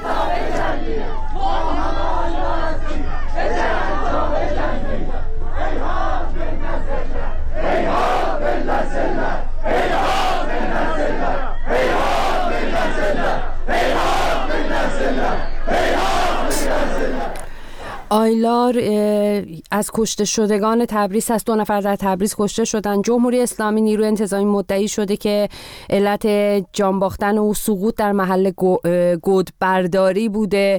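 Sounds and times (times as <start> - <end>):
protest crowd in Tabriz chanting slogans in Turkish: 0.0 - 18.2
speech: 18.5 - 30.7.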